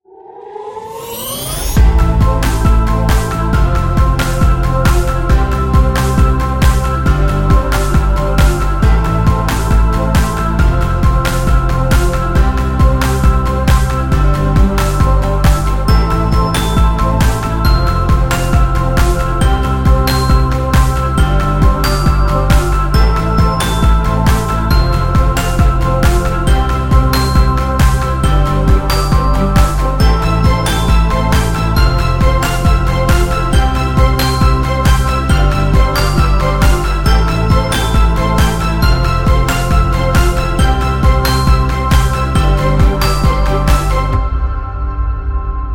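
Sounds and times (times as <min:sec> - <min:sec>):
epic corporate music: 0:01.5 - 0:45.7.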